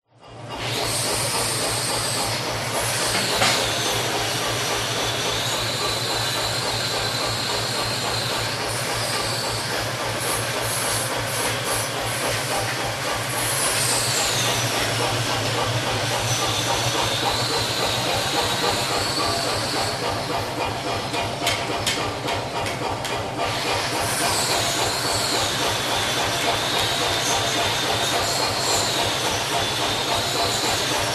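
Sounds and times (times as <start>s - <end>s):
blacksmith ambience: 0.0s - 31.1s.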